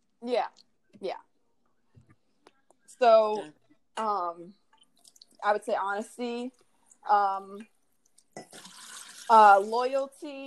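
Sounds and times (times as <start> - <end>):
speech: 0.2 - 1.3, 3.0 - 4.6, 5.4 - 7.7, 9.3 - 10.4
water poured into a glass: 4.7 - 5.4, 8.3 - 9.8.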